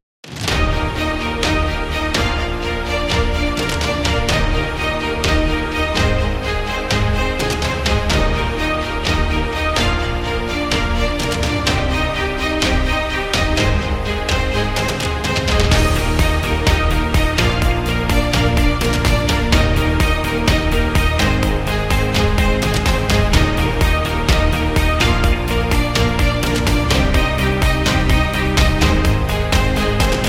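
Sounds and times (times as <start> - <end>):
motivational positive corporate music: 0.4 - 30.2.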